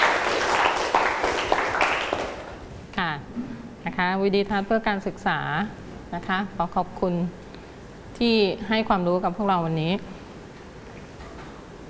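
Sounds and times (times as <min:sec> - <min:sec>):
students clapping hands: 0:00.0 - 0:02.6
speech: 0:03.0 - 0:07.4, 0:08.2 - 0:10.1.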